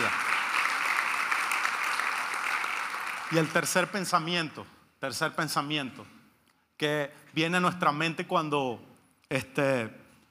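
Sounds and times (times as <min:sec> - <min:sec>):
church congregation clapping: 0:00.0 - 0:04.4
speech: 0:03.3 - 0:06.2, 0:06.8 - 0:10.0.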